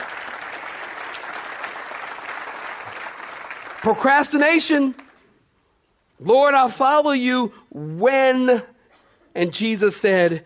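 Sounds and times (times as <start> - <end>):
audience applause: 0.0 - 4.2
speech: 3.8 - 5.0, 6.2 - 8.7, 9.4 - 10.4.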